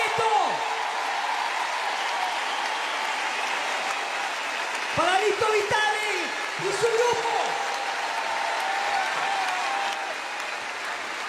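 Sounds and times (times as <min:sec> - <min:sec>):
audience applause: 0:00.0 - 0:11.2
speech: 0:05.0 - 0:07.5.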